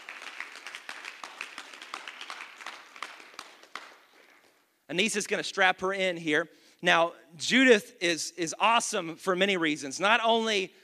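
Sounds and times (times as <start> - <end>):
audience clapping: 0.0 - 4.7
speech: 4.9 - 10.8.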